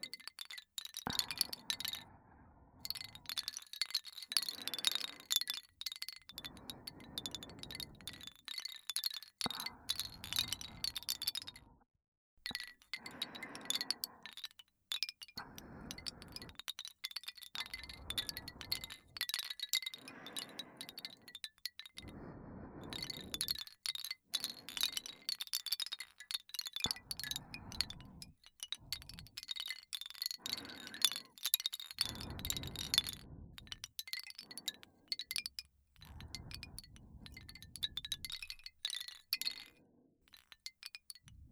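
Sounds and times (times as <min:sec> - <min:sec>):
wooden wind chime: 0:00.0 - 0:02.1, 0:02.8 - 0:11.6, 0:12.4 - 0:41.5
person breathing: 0:01.0 - 0:03.6, 0:06.3 - 0:08.4, 0:09.5 - 0:11.9, 0:12.5 - 0:14.6, 0:15.3 - 0:16.7, 0:17.3 - 0:25.5, 0:26.7 - 0:38.7, 0:41.2 - 0:41.5.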